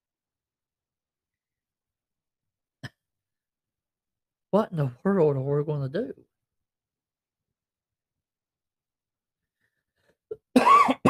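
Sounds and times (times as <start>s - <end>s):
speech: 4.5s - 6.3s
person coughing: 10.3s - 11.0s.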